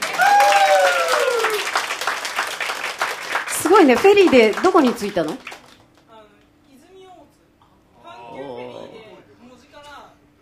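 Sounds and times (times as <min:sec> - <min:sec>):
audience applause: 0:00.0 - 0:06.0
speech: 0:03.8 - 0:05.5.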